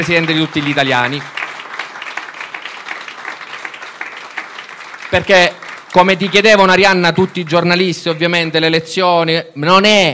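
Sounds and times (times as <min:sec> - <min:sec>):
speech: 0:00.0 - 0:01.4, 0:05.1 - 0:10.1
crowd clapping for Giorgia Meloni at a party gathering: 0:00.0 - 0:08.7.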